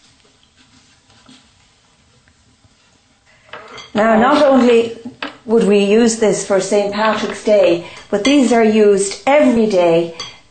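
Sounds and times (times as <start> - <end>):
scone ingredients with margarine rubbed in a bowl: 0.0 - 3.4
speech: 4.0 - 10.3.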